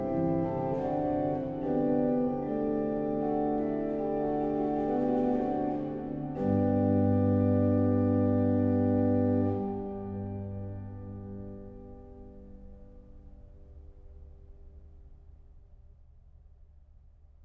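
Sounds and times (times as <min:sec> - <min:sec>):
organ: 0:00.0 - 0:13.6.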